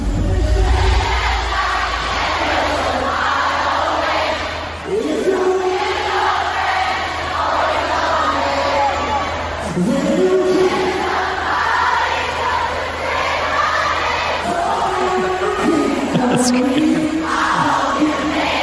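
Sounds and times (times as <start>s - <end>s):
concert crowd singing along loudly: 0.0s - 18.6s
laughter: 14.4s - 18.2s.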